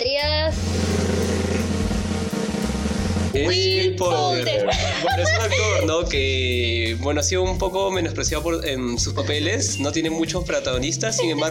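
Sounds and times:
drum roll: 0.5 - 3.8
speech: 3.4 - 11.4
laughter: 4.0 - 6.4, 9.1 - 9.8, 10.5 - 11.4.

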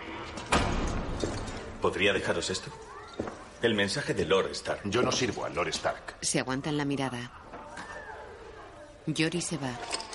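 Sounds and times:
door being closed: 0.5 - 1.3
speech: 1.8 - 7.4, 9.0 - 10.0.

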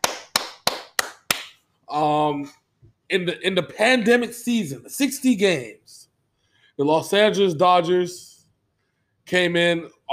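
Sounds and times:
hands clapping: 0.0 - 1.7
speech: 1.9 - 6.0, 6.8 - 8.3, 9.3 - 10.1.

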